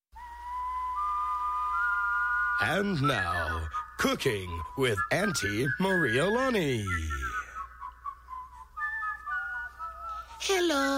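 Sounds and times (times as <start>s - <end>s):
person whistling: 0.2s - 10.9s
speech: 2.6s - 7.3s, 10.7s - 10.9s.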